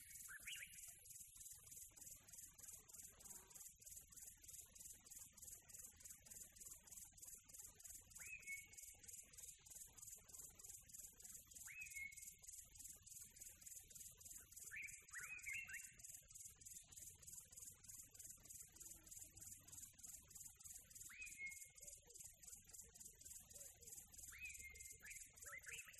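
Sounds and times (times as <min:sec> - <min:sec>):
tropical birds calling with warbled and whistled phrases: 0:00.0 - 0:01.8, 0:11.6 - 0:25.9.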